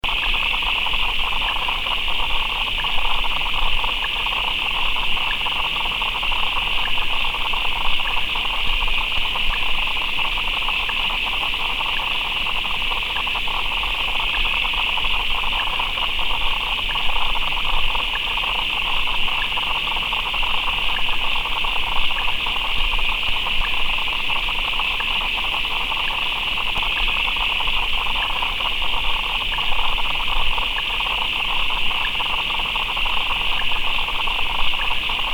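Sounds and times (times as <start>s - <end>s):
frogs: 0.0s - 35.3s.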